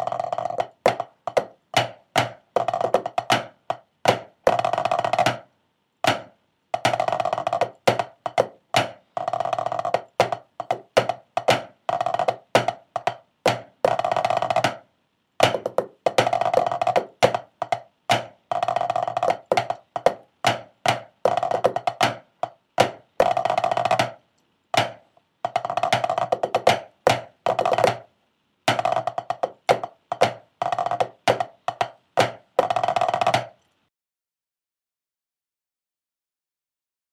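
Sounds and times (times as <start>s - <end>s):
tenor snare drum: 0.0s - 24.2s, 24.8s - 28.1s, 28.7s - 33.6s.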